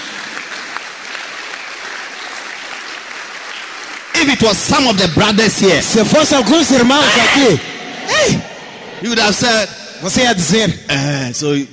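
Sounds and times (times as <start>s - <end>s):
audience clapping: 0.0s - 5.8s
speech: 4.2s - 11.7s.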